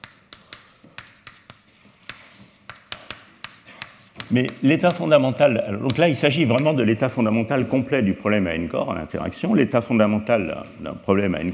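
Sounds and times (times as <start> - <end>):
chalk writing on a blackboard during a physics lecture: 0.0 - 6.8
speech: 4.3 - 11.5.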